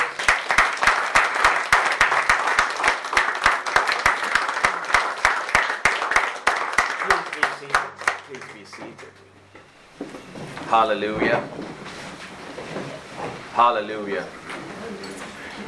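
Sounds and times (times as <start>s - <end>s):
audience applause: 0.0s - 9.3s
speech: 10.7s - 11.8s, 13.6s - 14.4s.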